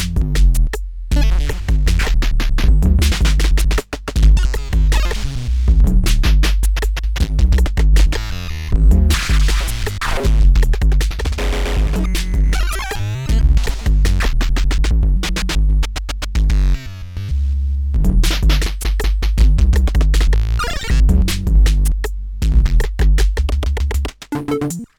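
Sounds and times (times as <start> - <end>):
808 drum machine controlled by Doepfer CV: 0.0 - 16.7, 18.0 - 24.9.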